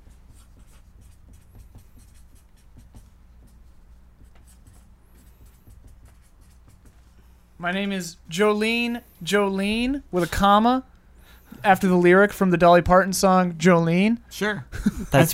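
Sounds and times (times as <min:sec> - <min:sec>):
pen scratching while writing a name down: 0:00.0 - 0:07.1
speech: 0:07.6 - 0:10.9, 0:11.6 - 0:15.3.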